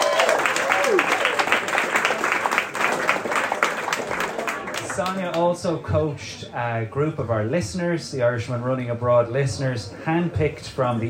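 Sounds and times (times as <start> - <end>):
audience applause: 0.0 - 5.4
speech: 5.0 - 11.0.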